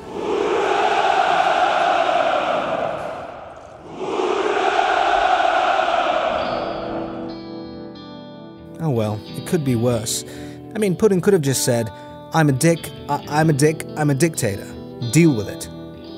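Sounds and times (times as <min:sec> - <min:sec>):
crowd cheering and rejoicing: 0:00.0 - 0:07.4
speech: 0:09.5 - 0:15.7.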